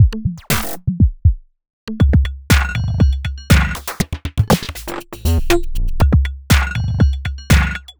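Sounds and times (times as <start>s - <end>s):
modular electronica robot thunder: 1.9s - 7.9s.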